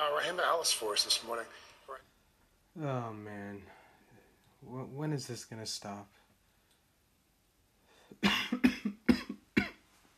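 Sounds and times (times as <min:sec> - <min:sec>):
speech: 0:00.1 - 0:02.1, 0:02.8 - 0:03.8, 0:04.6 - 0:06.2
harsh coughing after a hit from a vape pen: 0:08.1 - 0:09.9.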